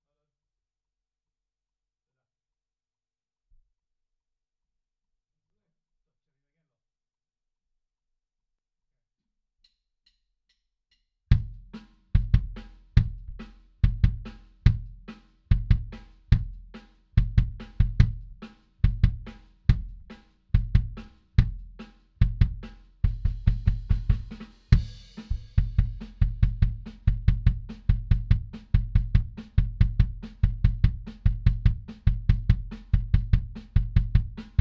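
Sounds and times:
bass drum: 0:11.3 - 0:34.5.

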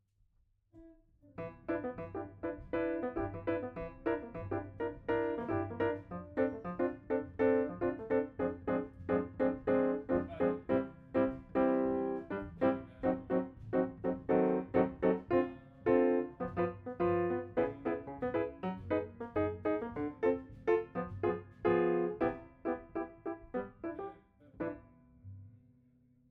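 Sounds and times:
piano note B: 0:01.4 - 0:24.9.

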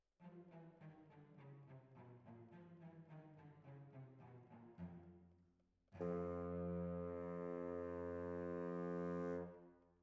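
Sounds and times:
oboe: 0:06.0 - 0:09.6.

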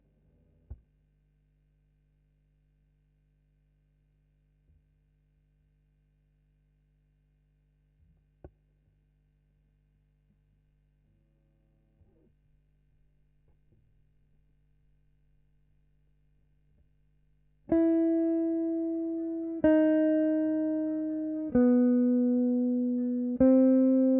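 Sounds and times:
guitar: 0:17.6 - 0:24.1.

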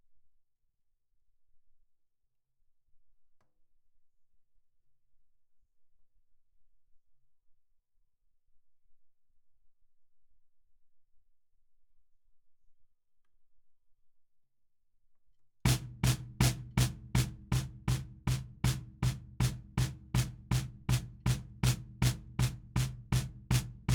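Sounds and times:
snare drum bottom: 0:15.7 - 0:23.9.

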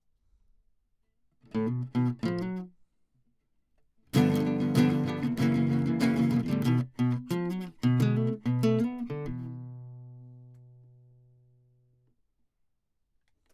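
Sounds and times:
classical guitar: 0:01.5 - 0:02.7, 0:04.1 - 0:11.5.

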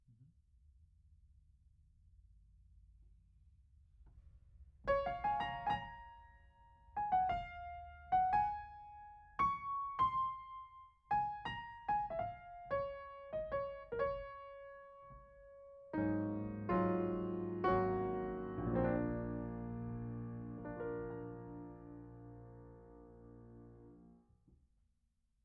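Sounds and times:
piano: 0:04.8 - 0:24.2.

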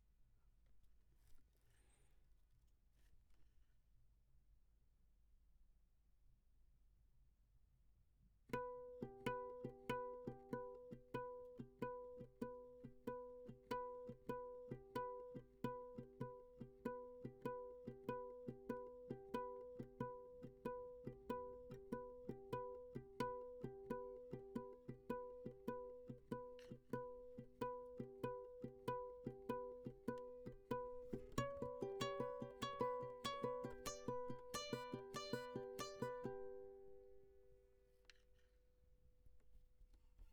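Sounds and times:
classical guitar: 0:08.5 - 0:37.4.

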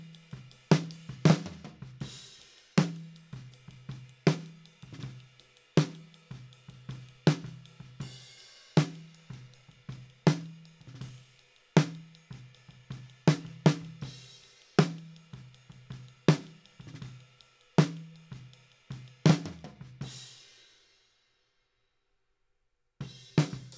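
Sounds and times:
snare drum top: 0:00.7 - 0:03.5, 0:04.3 - 0:06.1, 0:08.8 - 0:09.5, 0:13.3 - 0:15.1, 0:16.3 - 0:17.1, 0:19.0 - 0:20.1, 0:23.3 - 0:23.7.

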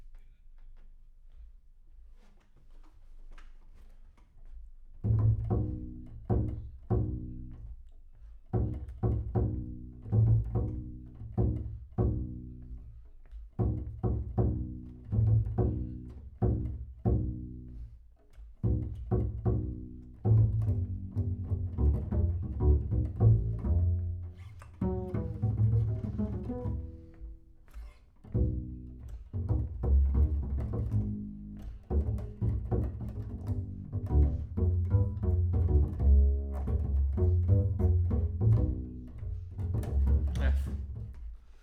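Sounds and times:
bass sound: 0:05.0 - 0:07.7, 0:08.5 - 0:12.8, 0:13.6 - 0:17.8, 0:18.6 - 0:27.4, 0:28.3 - 0:41.3.

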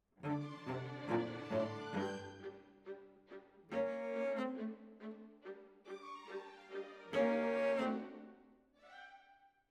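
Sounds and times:
cellos playing: 0:00.2 - 0:03.0, 0:03.7 - 0:05.7, 0:06.3 - 0:08.3.

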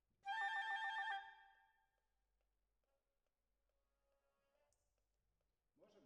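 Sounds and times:
oboe: 0:00.3 - 0:01.4.

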